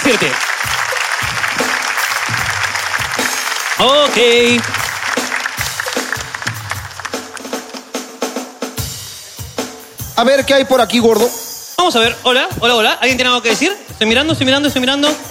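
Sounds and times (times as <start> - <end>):
audience applause: 0.0 - 8.0
speech: 0.1 - 1.6, 3.8 - 4.8, 10.2 - 15.2.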